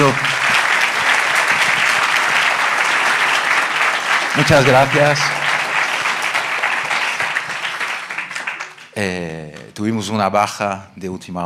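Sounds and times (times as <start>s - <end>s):
audience applause: 0.0s - 9.7s
speech: 4.4s - 5.4s, 9.0s - 11.4s.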